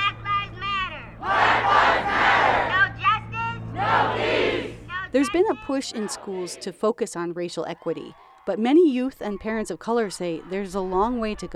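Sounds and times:
crowd chanting at a protest march: 0:01.1 - 0:03.0, 0:03.6 - 0:06.8
speech: 0:05.1 - 0:11.5.

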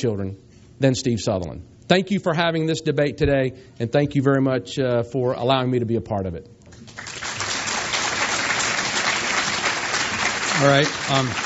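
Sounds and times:
speech: 0:00.0 - 0:07.1, 0:10.6 - 0:11.4
audience applause: 0:06.8 - 0:11.4.

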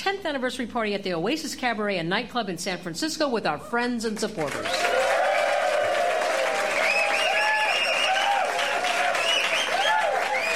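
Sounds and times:
speech: 0:00.0 - 0:05.0
crowd applause: 0:04.6 - 0:10.5
whoops and whistles: 0:06.8 - 0:10.5.

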